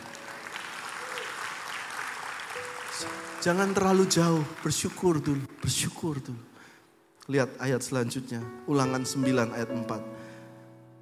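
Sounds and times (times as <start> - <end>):
crowd applause: 0.0 - 5.8
speech: 3.0 - 6.5, 7.3 - 10.2.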